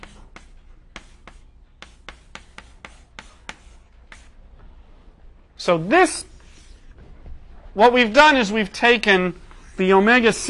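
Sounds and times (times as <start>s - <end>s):
writing strokes while finishing equations: 0.0s - 4.6s, 6.2s - 7.1s, 9.4s - 10.4s
speech: 5.6s - 6.3s, 7.8s - 10.4s.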